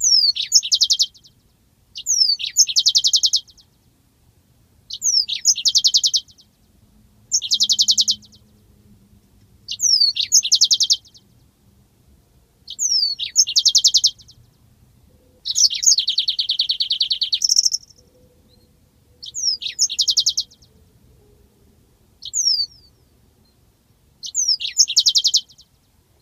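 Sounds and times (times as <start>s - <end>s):
yellow-fronted canary singing: 0.0s - 3.9s, 4.9s - 6.7s, 7.3s - 8.7s, 9.6s - 11.6s, 12.6s - 25.9s.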